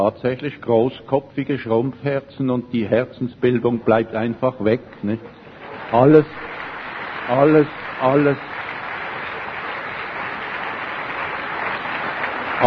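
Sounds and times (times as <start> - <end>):
speech: 0.0 - 6.5, 7.3 - 8.5
audience applause: 5.5 - 12.6.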